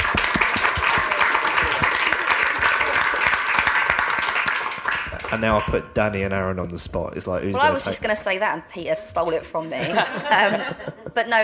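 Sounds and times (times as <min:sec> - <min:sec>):
audience applause: 0:00.0 - 0:05.8
laughter: 0:01.1 - 0:03.3, 0:09.6 - 0:11.4
speech: 0:05.3 - 0:11.4.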